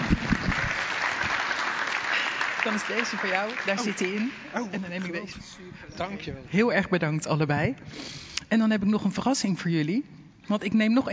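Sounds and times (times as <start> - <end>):
group applause: 0.0 - 4.9
speech: 2.6 - 11.1.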